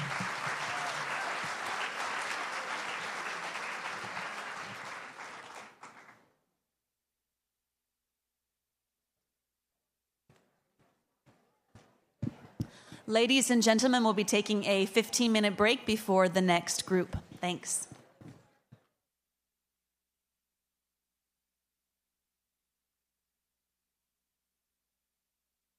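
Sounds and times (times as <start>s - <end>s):
audience applause at a live music performance: 0.0s - 6.3s
speech: 13.1s - 17.9s.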